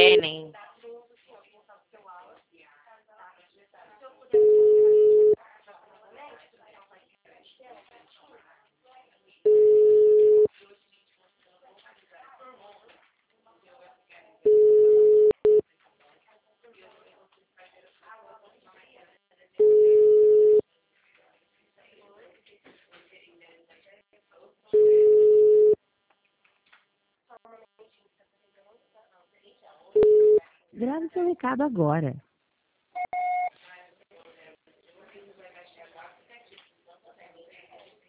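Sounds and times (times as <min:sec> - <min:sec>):
telephone line tone after a dropped call: 0:04.4 - 0:05.4, 0:09.5 - 0:10.5, 0:14.5 - 0:15.6, 0:19.6 - 0:20.6, 0:24.8 - 0:25.8, 0:30.0 - 0:30.4, 0:33.0 - 0:33.5
speech: 0:31.1 - 0:32.3.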